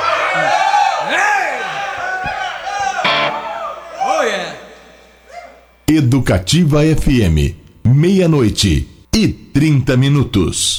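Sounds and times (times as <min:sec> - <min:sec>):
audience cheering and whooping: 0:00.0 - 0:05.7
speech: 0:05.9 - 0:10.7.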